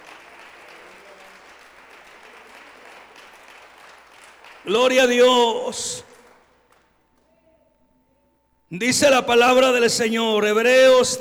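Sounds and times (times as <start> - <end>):
audience applauding: 0.0 - 7.0
speech: 4.6 - 6.1, 8.7 - 11.2.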